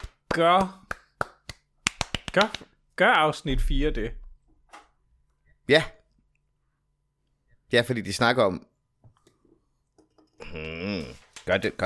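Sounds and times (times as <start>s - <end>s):
muffled hand clapping: 0.0s - 2.7s
speech: 0.4s - 0.9s, 2.3s - 4.2s, 5.7s - 6.0s, 7.7s - 8.7s, 10.4s - 11.8s.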